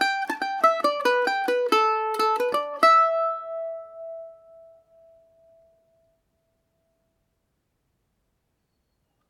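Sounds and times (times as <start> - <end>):
Irish mandolin playing a polka in A Dorian: 0.0 - 6.1.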